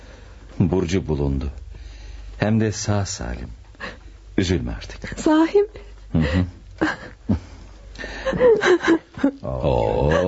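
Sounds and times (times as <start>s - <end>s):
speech: 0.6s - 1.6s, 2.4s - 3.6s, 4.4s - 7.4s, 8.3s - 10.2s
laughter: 6.1s - 10.2s
person crying and sobbing: 8.4s - 10.2s.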